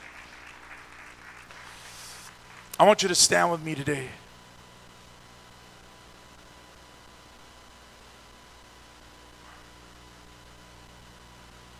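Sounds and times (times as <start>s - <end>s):
audience clapping hands: 0.0s - 3.7s
speech: 2.8s - 4.2s.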